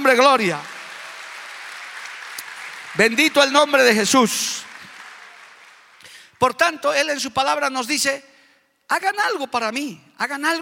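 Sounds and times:
audience applause: 0:00.0 - 0:06.4
speech: 0:00.1 - 0:00.7, 0:03.0 - 0:04.7, 0:06.4 - 0:08.3, 0:08.9 - 0:10.6.

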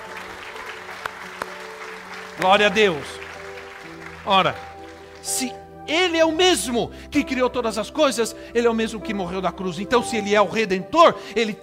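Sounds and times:
audience applause: 0:00.0 - 0:05.6
speech: 0:02.4 - 0:03.2, 0:04.2 - 0:11.6.

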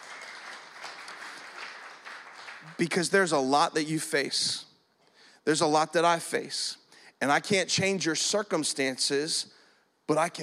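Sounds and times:
audience clapping: 0:00.0 - 0:03.1
speech: 0:02.7 - 0:04.7, 0:05.5 - 0:10.4.

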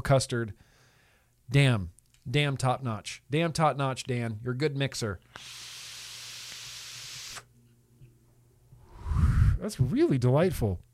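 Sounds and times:
speech: 0:00.1 - 0:00.7, 0:01.5 - 0:05.6, 0:09.6 - 0:10.9
vape exhale hiss: 0:05.3 - 0:07.5, 0:08.8 - 0:09.6
low rumbling rush of air: 0:08.8 - 0:09.9.

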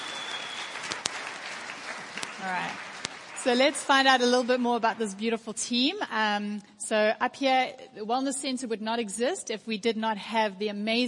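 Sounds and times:
audience applause: 0:00.0 - 0:04.6
speech: 0:02.4 - 0:11.0.

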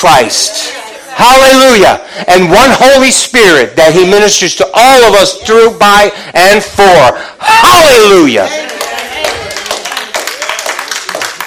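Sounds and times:
speech: 0:00.0 - 0:08.6
audience clapping: 0:08.5 - 0:11.4.

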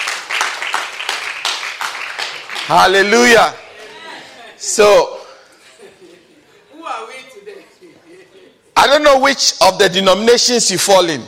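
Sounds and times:
audience clapping: 0:00.0 - 0:03.9
speech: 0:02.7 - 0:03.6, 0:04.6 - 0:05.2, 0:08.8 - 0:11.2
laughter: 0:03.6 - 0:04.8, 0:05.5 - 0:08.8.

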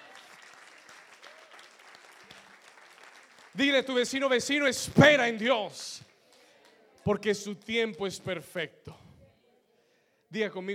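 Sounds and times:
crowd clapping: 0:00.0 - 0:08.1
speech: 0:03.6 - 0:06.1, 0:07.1 - 0:09.0, 0:10.3 - 0:10.7.

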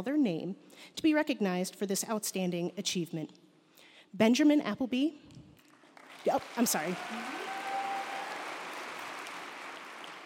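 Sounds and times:
speech: 0:00.0 - 0:03.4, 0:04.1 - 0:05.4, 0:06.2 - 0:07.4
crowd applause: 0:06.0 - 0:10.2
vocal whoops: 0:07.0 - 0:08.6.

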